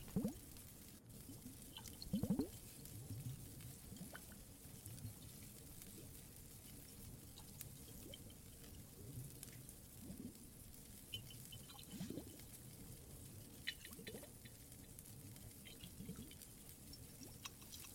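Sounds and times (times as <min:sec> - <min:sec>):
fireplace crackling: 0:00.0 - 0:17.9
water trickling and dripping in a cave: 0:00.0 - 0:17.9.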